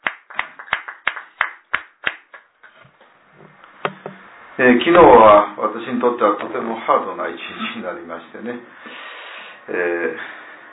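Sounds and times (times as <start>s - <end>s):
applause: 0.0s - 2.5s
speech: 4.6s - 10.4s.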